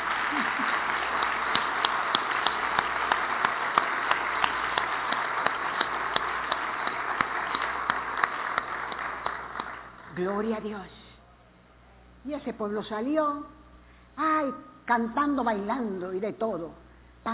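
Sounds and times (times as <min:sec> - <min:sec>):
audience applause: 0:00.0 - 0:10.1
speech: 0:10.4 - 0:11.0, 0:12.2 - 0:13.6, 0:14.2 - 0:17.3.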